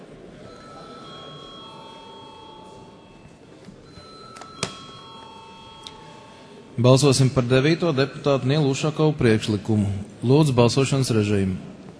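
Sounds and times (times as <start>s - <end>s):
low murmur of noise: 0.0s - 11.9s
parliament voting bell ringing: 0.4s - 8.6s
speech: 6.8s - 11.7s.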